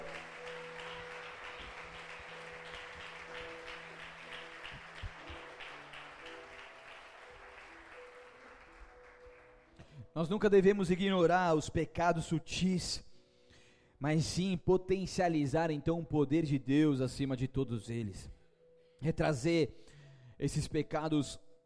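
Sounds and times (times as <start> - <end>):
audience applauding: 0.0 - 9.8
sustained organ or keyboard chords: 0.0 - 9.9
speech: 10.2 - 13.1, 14.0 - 18.4, 19.0 - 21.6.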